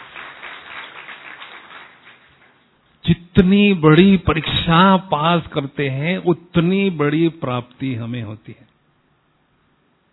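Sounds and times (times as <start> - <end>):
crowd applause: 0.0 - 2.6
speech: 3.1 - 8.7.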